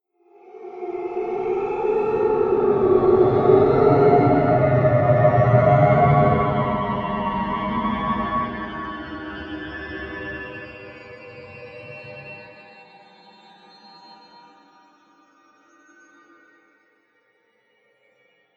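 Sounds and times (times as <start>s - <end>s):
ghost horror sound effect: 0.3s - 10.3s.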